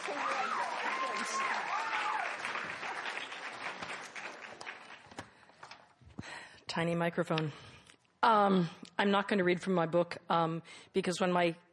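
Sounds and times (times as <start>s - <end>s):
crowd cheering and applauding: 0.0s - 5.2s
speech: 6.8s - 7.6s, 8.2s - 11.6s.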